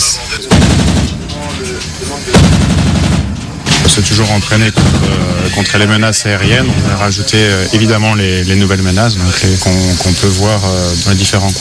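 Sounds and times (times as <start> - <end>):
100 mm and 20 mm naval cannon firing: 0.4 - 5.7, 6.4 - 7.3
rear machine gun firing: 0.5 - 5.8
speech: 3.9 - 11.6.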